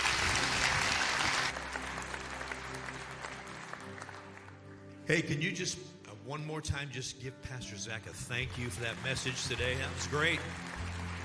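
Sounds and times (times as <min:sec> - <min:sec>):
church congregation applauding new members: 0:00.0 - 0:05.0, 0:08.3 - 0:11.2
speech: 0:05.1 - 0:10.8.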